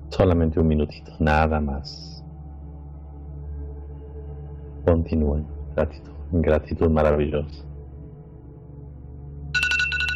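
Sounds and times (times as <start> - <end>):
speech: 0.1 - 2.2, 4.8 - 7.7
bell ringing: 9.6 - 10.1.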